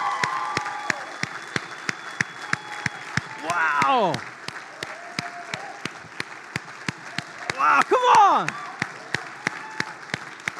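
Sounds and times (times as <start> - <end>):
crowd cheering and shouting praise: 0.0 - 1.6, 2.4 - 6.0, 7.1 - 10.2
audience clapping in unison: 0.0 - 10.5
speech: 3.6 - 4.3, 8.3 - 8.6.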